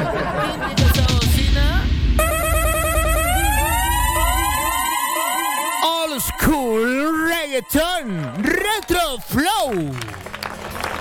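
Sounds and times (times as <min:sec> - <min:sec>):
laughter: 0:00.0 - 0:01.5
siren horn wailing: 0:02.2 - 0:08.4
speech: 0:07.6 - 0:10.3.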